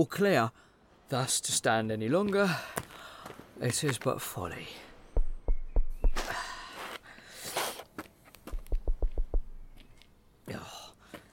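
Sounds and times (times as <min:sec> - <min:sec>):
speech: 0:00.0 - 0:02.8, 0:03.6 - 0:04.9
knocking on a door: 0:05.2 - 0:06.2, 0:08.6 - 0:09.5.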